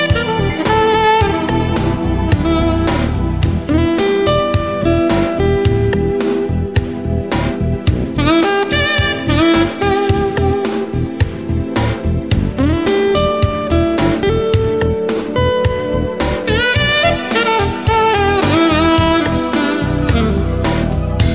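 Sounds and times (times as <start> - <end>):
guitar ringtone: 0.0 - 21.3
saxophone ringtone: 0.0 - 21.3.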